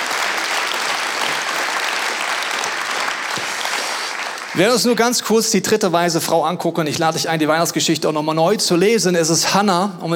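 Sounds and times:
audience applause: 0.0 - 4.9
speech: 4.6 - 10.1.

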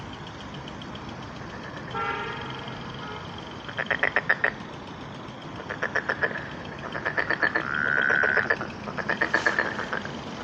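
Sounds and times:
frogs calling at a pond on a spring evening: 0.0 - 10.4
frog honking croak: 1.9 - 4.6, 5.6 - 10.2.

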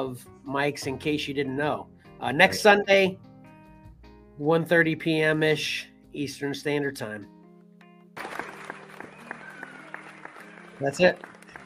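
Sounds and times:
speech: 0.0 - 3.3, 4.4 - 7.4, 10.8 - 11.3
applause sound effect: 8.2 - 11.6.

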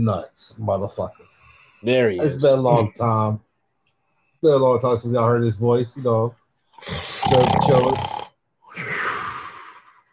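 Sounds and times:
speech: 0.0 - 3.5, 4.4 - 8.2
snoring: 6.8 - 8.3.

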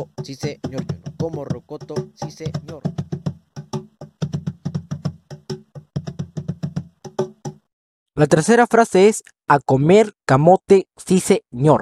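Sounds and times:
speech: 0.0 - 3.2, 8.2 - 11.8
hands striking cajón drum rhythm: 0.0 - 7.7.

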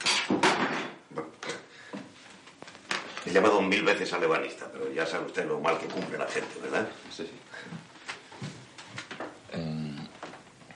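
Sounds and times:
wooden chair breaking apart: 0.0 - 1.0
speech: 3.3 - 7.8.

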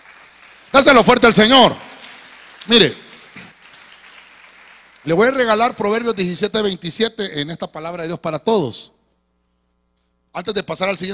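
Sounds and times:
audience clapping in a reverberant room: 0.0 - 6.2
speech: 0.7 - 1.8, 2.6 - 3.0, 5.0 - 8.9, 10.4 - 11.1.

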